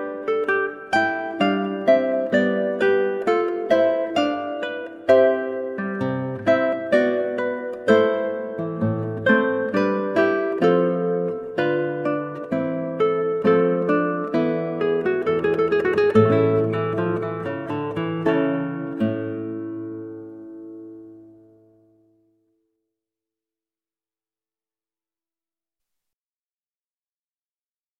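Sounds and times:
guitar: 0:00.0 - 0:22.4.

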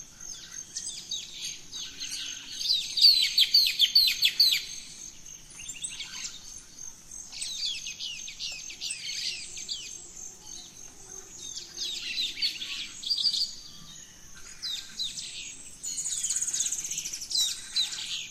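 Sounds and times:
bird singing at dawn: 0:00.0 - 0:18.3
insect whine: 0:00.0 - 0:18.3.

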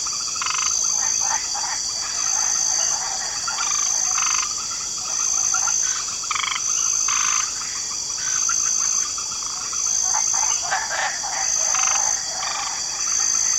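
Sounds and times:
light chorus of frogs croaking in a swamp: 0:00.0 - 0:13.5.

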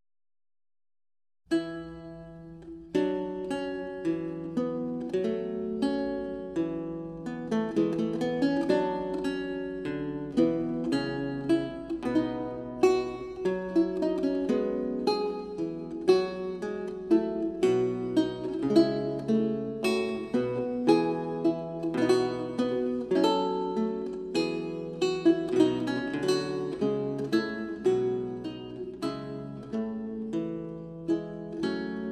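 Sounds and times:
recercar on renaissance lute: 0:01.5 - 0:32.1.

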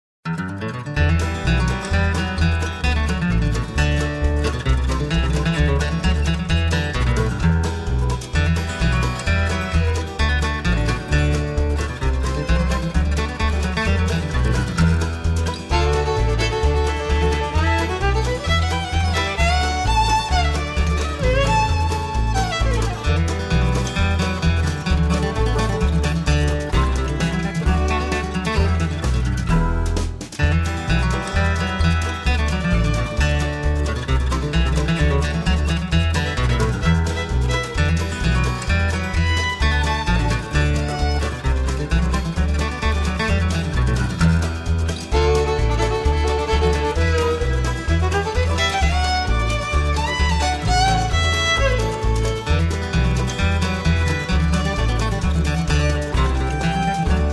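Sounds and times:
country music: 0:00.2 - 0:57.3.

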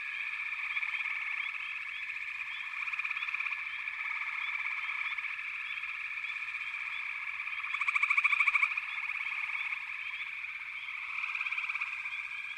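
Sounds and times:
frogs calling in chorus: 0:00.0 - 0:12.5.

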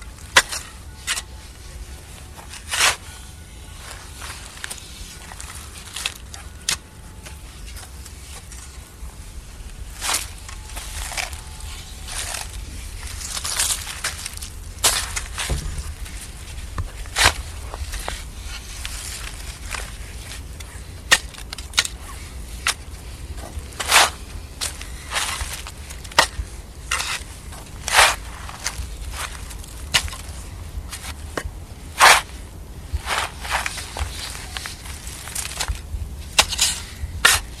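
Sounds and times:
spade digging: 0:00.2 - 0:03.2, 0:10.0 - 0:37.5.

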